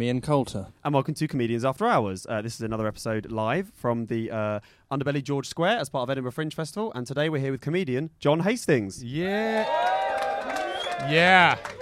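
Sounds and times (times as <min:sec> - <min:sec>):
speech: 0:00.0 - 0:10.0, 0:11.0 - 0:11.8
live audience cheering: 0:09.2 - 0:11.8.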